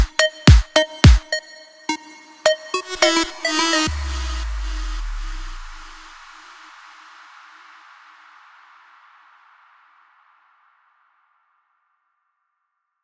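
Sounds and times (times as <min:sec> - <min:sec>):
Arabic and Balkan vocal remix music: 0:00.0 - 0:06.2.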